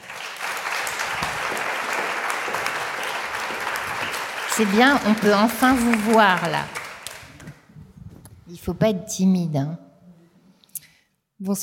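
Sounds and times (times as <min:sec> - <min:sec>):
audience applause: 0:00.0 - 0:07.6
speech: 0:04.6 - 0:06.8, 0:08.5 - 0:09.8, 0:11.4 - 0:11.6.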